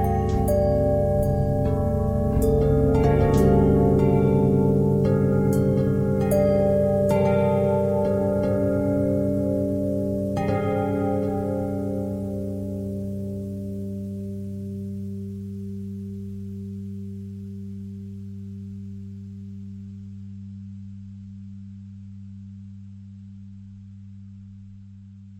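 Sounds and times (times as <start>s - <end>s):
pentatonic bells: 0.0s - 18.8s.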